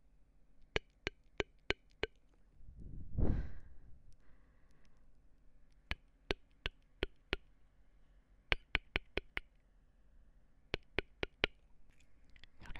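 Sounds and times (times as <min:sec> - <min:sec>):
mouth clicks and pops: 0:00.7 - 0:02.2, 0:05.7 - 0:07.5, 0:08.5 - 0:09.6, 0:10.7 - 0:12.6.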